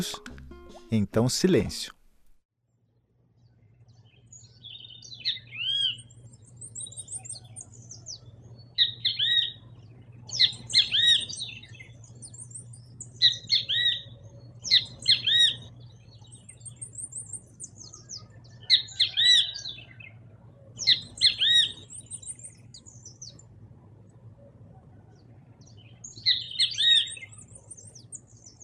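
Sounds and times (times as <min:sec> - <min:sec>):
speech: 0:00.0 - 0:00.3, 0:00.9 - 0:02.0
low steady hum: 0:00.9 - 0:28.6
great kiskadee singing in the Amazon rainforest: 0:04.1 - 0:20.2, 0:20.8 - 0:23.4, 0:25.6 - 0:28.6.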